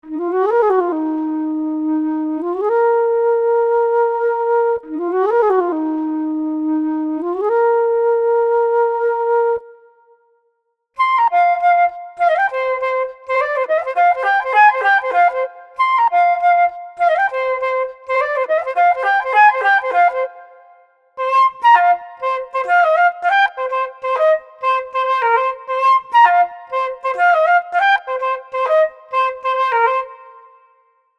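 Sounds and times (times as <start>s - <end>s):
flute playing: 0.0s - 10.2s, 11.0s - 31.0s.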